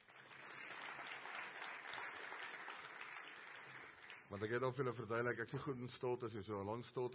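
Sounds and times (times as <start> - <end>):
audience clapping: 0.0 - 5.0
speech: 4.3 - 7.1.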